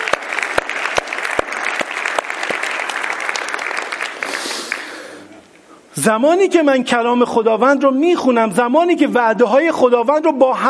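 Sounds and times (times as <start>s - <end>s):
congregation clapping for God during a church sermon: 0.0s - 5.3s
speech: 6.0s - 10.6s.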